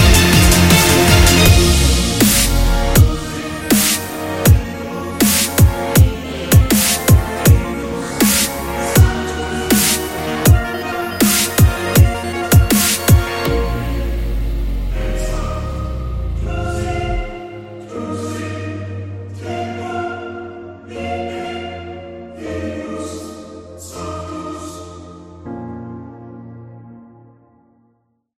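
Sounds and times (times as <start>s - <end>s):
epic dubstep music: 0.0s - 17.7s.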